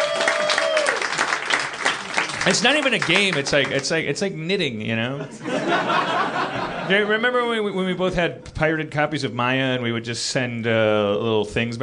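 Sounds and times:
audience applause: 0.0 - 3.9
speech: 2.4 - 11.8
laughter: 5.2 - 7.3.

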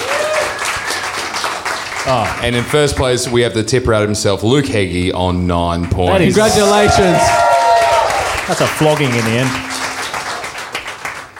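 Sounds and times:
faint whoops and cheers: 0.0 - 1.2, 6.1 - 8.4
audience applause: 0.0 - 3.0, 6.1 - 11.3
speech: 2.0 - 7.6, 8.5 - 9.8.

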